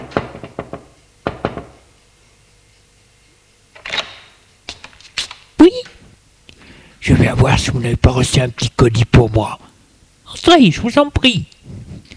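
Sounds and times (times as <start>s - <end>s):
knocking on the concierge's door: 0.0s - 1.8s
speech: 7.1s - 9.6s, 10.3s - 11.5s.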